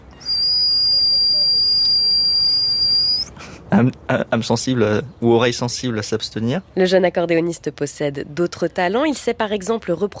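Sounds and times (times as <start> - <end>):
person imitating a pressure cooker whistle with their mouth: 0.2 - 3.3
speech: 3.7 - 10.1.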